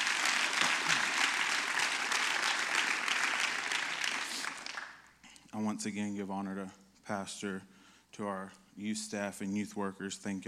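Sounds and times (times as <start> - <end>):
audience clapping: 0.0 - 5.2
speech: 5.6 - 10.4.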